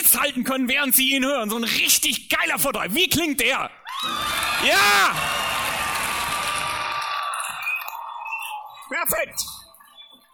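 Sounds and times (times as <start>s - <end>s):
speech: 0.1s - 5.4s, 8.9s - 9.6s
large crowd clapping and cheering: 3.9s - 8.9s.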